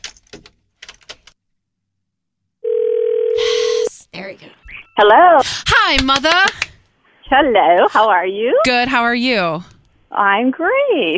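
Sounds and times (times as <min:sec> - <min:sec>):
steady telephone tone: 0:02.6 - 0:03.9
speech: 0:04.2 - 0:06.7, 0:07.3 - 0:11.1.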